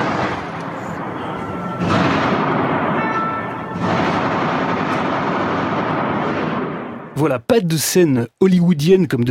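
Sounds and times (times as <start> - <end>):
faint tonal whine: 0.0 - 2.0
gunfire from terrorists' war weapons: 0.0 - 7.2
speech: 7.2 - 9.3.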